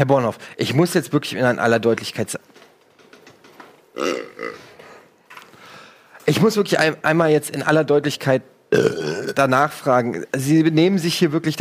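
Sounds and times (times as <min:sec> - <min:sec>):
speech: 0:00.0 - 0:02.5, 0:06.4 - 0:11.5
burp: 0:03.9 - 0:05.0, 0:08.7 - 0:09.4.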